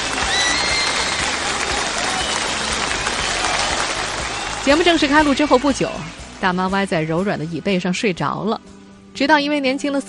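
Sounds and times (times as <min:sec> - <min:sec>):
studio audience applauding: 0:00.0 - 0:06.4
speech: 0:04.7 - 0:10.0.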